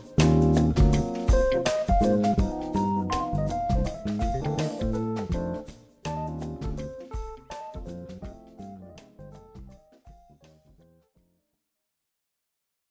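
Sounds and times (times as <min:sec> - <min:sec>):
Hammond organ funk: 0:00.0 - 0:07.0.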